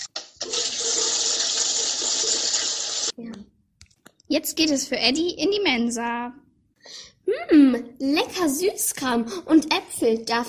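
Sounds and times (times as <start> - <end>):
toilet flushing: 0.2 - 3.1
speech: 4.3 - 6.5, 7.4 - 10.4.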